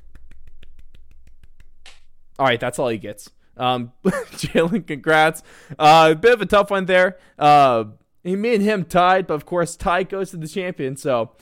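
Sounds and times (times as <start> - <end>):
short hand clapping: 0.0 - 2.1
speech: 2.4 - 11.4.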